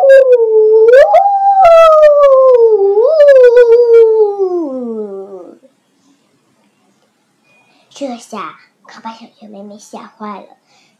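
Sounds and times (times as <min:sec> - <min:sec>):
person imitating a ghostly howl: 0:00.0 - 0:05.7
speech: 0:09.5 - 0:10.8.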